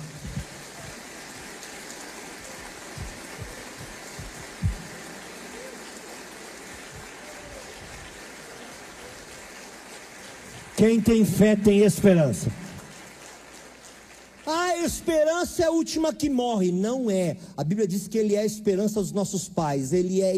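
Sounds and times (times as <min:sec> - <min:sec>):
audience applauding: 0:00.0 - 0:15.8
speech: 0:10.8 - 0:12.6, 0:15.0 - 0:20.3.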